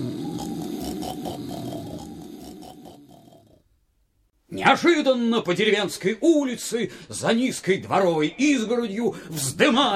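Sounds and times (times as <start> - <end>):
loud snoring: 0.0 - 3.7
speech: 4.5 - 9.9.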